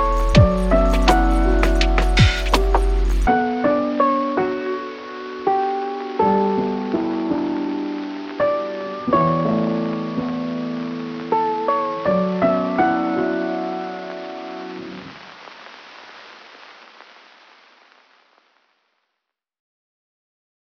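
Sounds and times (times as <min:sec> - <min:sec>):
lo-fi piano: 0:00.0 - 0:16.6.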